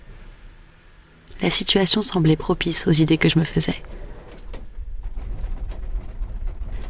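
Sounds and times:
steady low rumble of machinery: 0:00.0 - 0:06.8
speech: 0:01.4 - 0:04.0
cable car gondola doors sliding shut: 0:03.2 - 0:06.8.

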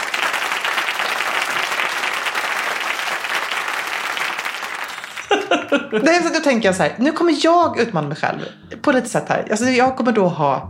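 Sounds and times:
applause: 0:00.0 - 0:06.0
laughter: 0:04.8 - 0:06.6
speech: 0:05.7 - 0:10.6.

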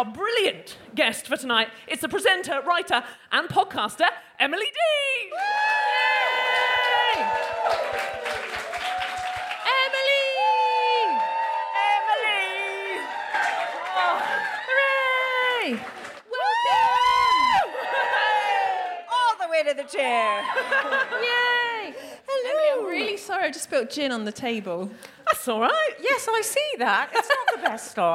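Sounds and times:
speech: 0:00.0 - 0:05.7, 0:15.7 - 0:16.0, 0:19.6 - 0:21.6, 0:22.8 - 0:28.1
live audience applause: 0:05.6 - 0:19.0
laughter: 0:17.4 - 0:18.9, 0:20.2 - 0:22.0, 0:27.1 - 0:27.9.

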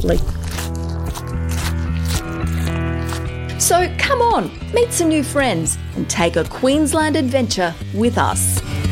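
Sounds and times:
speech: 0:00.0 - 0:00.5, 0:03.6 - 0:08.8
footsteps crunching on gravel: 0:00.0 - 0:03.6.

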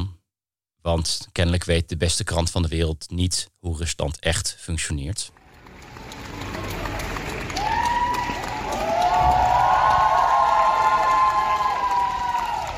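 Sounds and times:
speech: 0:00.8 - 0:05.4
students applauding in a university courtyard: 0:05.4 - 0:12.7.

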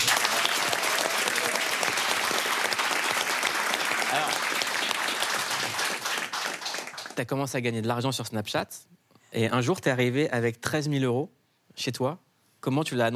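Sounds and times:
studio audience applause: 0:00.0 - 0:07.2
speech: 0:07.2 - 0:13.1.

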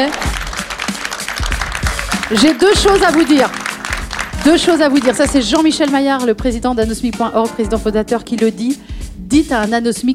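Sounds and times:
audience applause: 0:00.0 - 0:05.7
speech: 0:02.3 - 0:03.6, 0:04.4 - 0:10.1.

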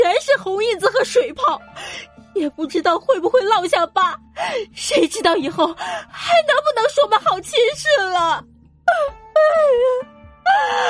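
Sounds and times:
speech: 0:00.4 - 0:10.8
mother wailing and crying: 0:08.9 - 0:10.8.

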